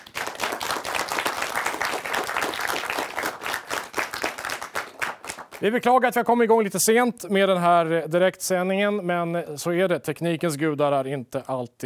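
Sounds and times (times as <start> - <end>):
audience applause: 0.0 - 5.6
speech: 5.6 - 11.8.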